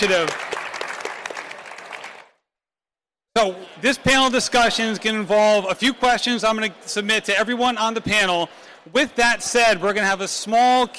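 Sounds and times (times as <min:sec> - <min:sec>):
speech: 0:00.0 - 0:00.4, 0:03.4 - 0:10.9
audience applause: 0:00.0 - 0:02.4.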